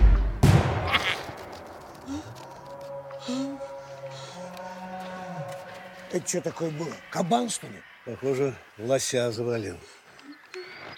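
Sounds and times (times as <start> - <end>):
rifle shot fired at a hare: 0.4 - 1.4
speech: 3.3 - 3.5, 6.1 - 10.0.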